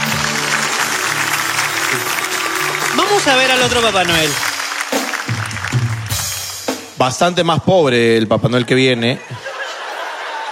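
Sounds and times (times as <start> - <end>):
applause: 0.0 - 7.0
speech: 3.2 - 4.5, 7.0 - 9.4
laughter: 8.4 - 10.5.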